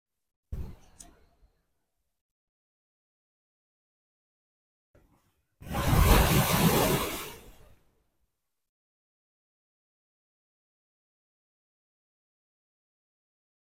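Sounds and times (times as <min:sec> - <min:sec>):
ocean: 0:05.2 - 0:08.2.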